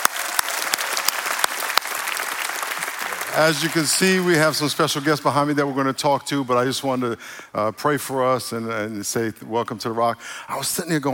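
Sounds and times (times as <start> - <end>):
church congregation at The Rock applauding during a service: 0.0 - 5.9
speech: 3.4 - 11.1.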